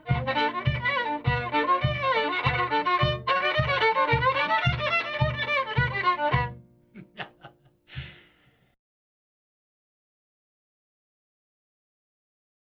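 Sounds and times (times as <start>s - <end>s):
reel tune in B flat: 0.0s - 6.6s
laughter: 7.0s - 8.4s.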